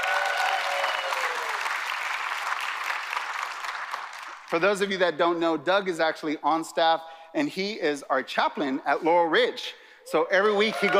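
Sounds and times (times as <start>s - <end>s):
audience applause: 0.0s - 4.5s, 10.6s - 10.9s
speech: 4.5s - 10.9s.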